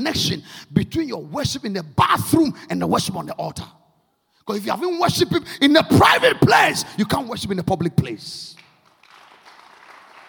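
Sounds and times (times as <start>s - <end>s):
speech: 0.0s - 3.8s, 4.5s - 8.6s
audience clapping: 8.5s - 10.2s.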